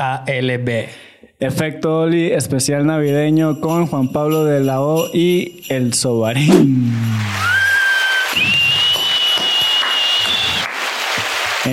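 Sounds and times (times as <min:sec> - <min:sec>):
speech: 0:00.0 - 0:07.5
audience applause: 0:06.7 - 0:11.7.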